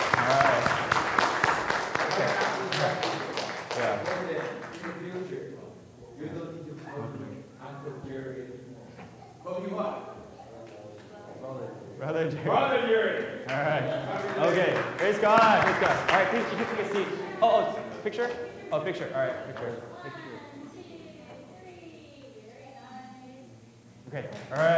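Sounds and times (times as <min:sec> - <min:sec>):
applause: 0:00.0 - 0:05.2, 0:13.5 - 0:17.3, 0:24.3 - 0:24.7
speech: 0:12.3 - 0:20.3.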